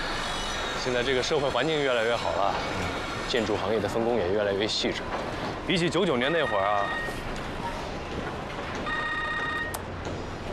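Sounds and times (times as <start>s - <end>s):
rumbling noise: 0.0s - 10.5s
speech: 0.8s - 7.1s
telephone ringing with an incoming call: 6.2s - 7.2s, 8.8s - 9.8s.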